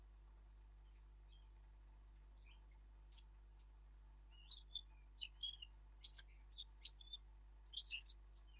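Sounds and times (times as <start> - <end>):
Eurasian blackcap Sylvia atricapilla song: 0.0 - 8.5.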